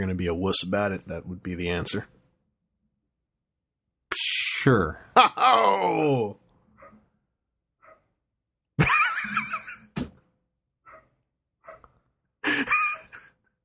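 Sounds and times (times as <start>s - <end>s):
speech: 0.0s - 2.2s, 4.1s - 6.4s
laughter: 5.2s - 6.3s, 8.8s - 10.0s, 12.4s - 13.4s
dog barking: 6.8s - 7.1s, 7.8s - 8.1s, 10.9s - 11.9s.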